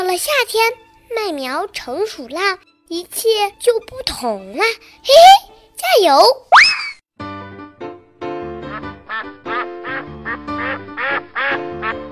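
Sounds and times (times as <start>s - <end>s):
speech: 0.0s - 6.7s
duck quacking: 8.7s - 12.1s.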